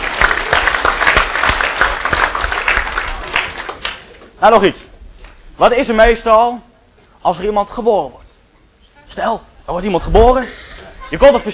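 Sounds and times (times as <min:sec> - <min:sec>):
children applauding: 0:00.0 - 0:04.2
speech: 0:04.4 - 0:04.9, 0:05.6 - 0:08.2, 0:09.1 - 0:11.5
laughter: 0:10.5 - 0:11.5.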